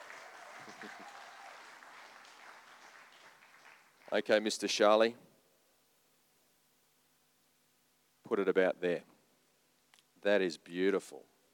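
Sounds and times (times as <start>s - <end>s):
half-hearted audience applause: 0.0s - 4.6s
speech: 0.8s - 1.3s, 4.1s - 5.2s, 8.3s - 9.1s, 10.2s - 11.3s.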